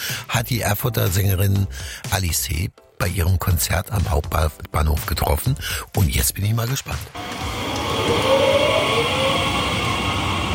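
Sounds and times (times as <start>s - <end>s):
speech: 0.4s - 8.5s
train cars braking: 7.1s - 10.5s.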